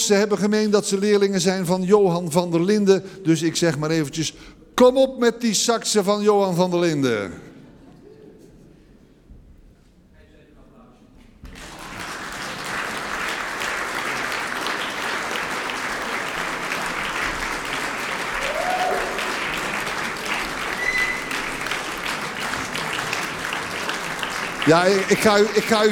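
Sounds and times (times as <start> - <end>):
speech: 0.0 - 7.5, 24.7 - 25.8
audience applause: 11.4 - 25.8.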